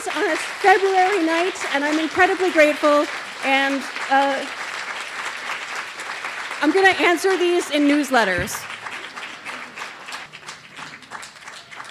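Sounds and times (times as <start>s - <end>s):
audience applause at a show: 0.0s - 11.9s
speech: 0.1s - 4.6s, 6.6s - 8.7s.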